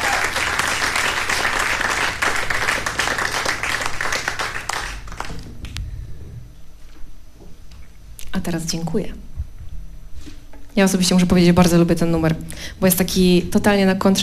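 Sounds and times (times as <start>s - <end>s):
audience applause: 0.0s - 5.6s
speech: 8.4s - 9.3s, 10.8s - 14.2s.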